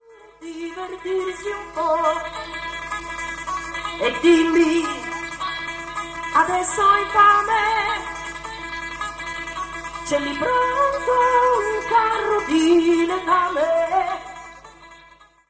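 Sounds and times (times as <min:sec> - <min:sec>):
person singing unreleased song: 0:00.0 - 0:02.8, 0:03.9 - 0:08.5, 0:10.0 - 0:14.6
guitar: 0:00.4 - 0:15.4.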